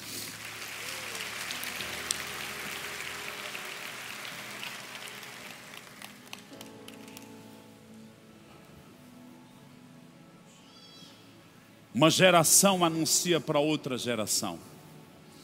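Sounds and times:
audience clapping: 0:00.0 - 0:07.5
speech: 0:12.0 - 0:14.7.

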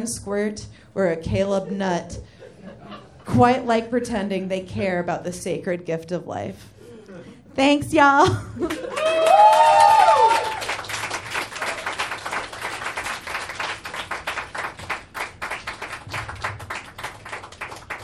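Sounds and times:
speech: 0:00.0 - 0:06.7, 0:07.6 - 0:10.5
audience applause: 0:08.6 - 0:18.0.

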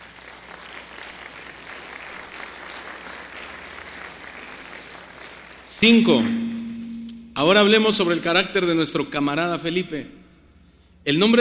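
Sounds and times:
audience applause: 0:00.0 - 0:05.7
speech: 0:05.8 - 0:06.4, 0:07.4 - 0:10.2, 0:11.0 - 0:11.3.

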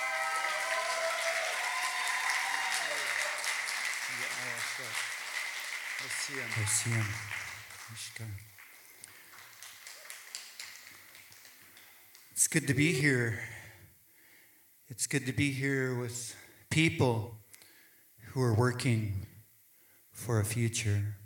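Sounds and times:
audience applause: 0:00.0 - 0:12.2
speech: 0:04.4 - 0:05.2, 0:06.0 - 0:08.5, 0:12.5 - 0:13.5, 0:14.9 - 0:17.4, 0:18.3 - 0:19.3, 0:20.2 - 0:21.2.

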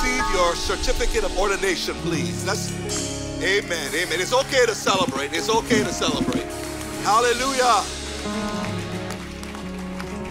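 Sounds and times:
speech: 0:00.5 - 0:08.8
audience clapping: 0:02.9 - 0:10.2.

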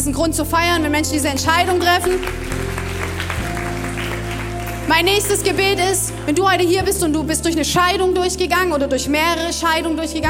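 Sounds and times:
speech: 0:00.0 - 0:02.8, 0:04.9 - 0:10.2
audience clapping: 0:01.5 - 0:06.7.

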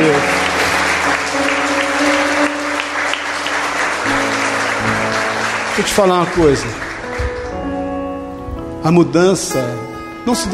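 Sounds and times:
audience applauding: 0:00.0 - 0:08.3
speech: 0:05.8 - 0:06.9, 0:08.8 - 0:10.5.

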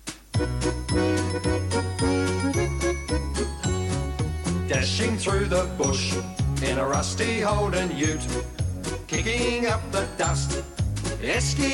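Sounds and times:
upbeat instrumental Christmas parody intro with chiming tones and bouncing bass: 0:00.0 - 0:11.7
speech: 0:04.7 - 0:11.7.

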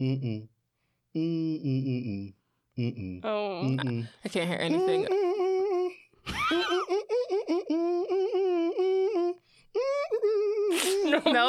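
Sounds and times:
person humming a melodic tune: 0:00.0 - 0:00.5, 0:01.2 - 0:04.1, 0:04.7 - 0:06.1, 0:07.0 - 0:11.2
speech: 0:00.0 - 0:05.3, 0:06.2 - 0:07.0.

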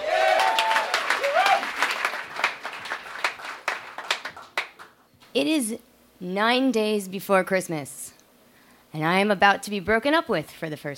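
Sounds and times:
audience applause: 0:00.0 - 0:04.9
speech: 0:05.4 - 0:08.0, 0:08.9 - 0:10.9.

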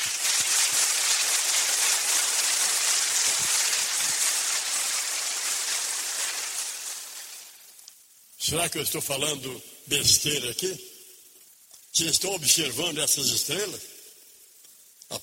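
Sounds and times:
audience applause: 0:00.0 - 0:07.6
speech: 0:08.5 - 0:10.9, 0:12.0 - 0:14.0.

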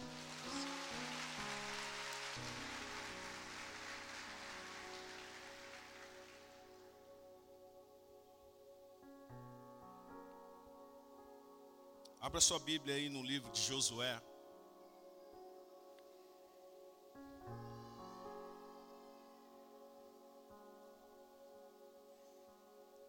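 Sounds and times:
audience clapping: 0:00.0 - 0:06.9
sustained keyboard chords: 0:00.0 - 0:23.0
speech: 0:12.2 - 0:14.3.

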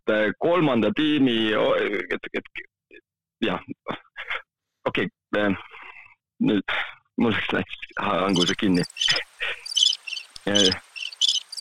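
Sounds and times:
speech: 0:00.1 - 0:02.7, 0:03.4 - 0:05.7, 0:06.4 - 0:09.6, 0:10.4 - 0:10.8
birds chirping: 0:07.8 - 0:11.5.

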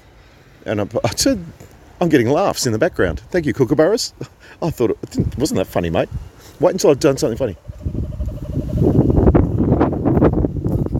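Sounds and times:
speech: 0:00.6 - 0:07.9
wind at Nightcliff buffeting the microphone: 0:04.9 - 0:10.9.

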